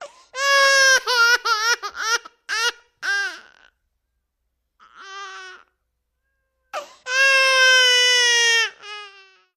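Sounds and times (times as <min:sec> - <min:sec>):
10-month-old baby crying: 0:00.0 - 0:03.8, 0:04.8 - 0:05.8, 0:06.7 - 0:09.5.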